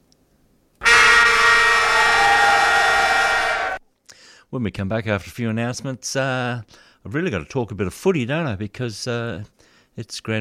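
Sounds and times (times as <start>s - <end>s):
football three-quarter time siren: 0.8s - 3.8s
speech: 4.5s - 10.3s.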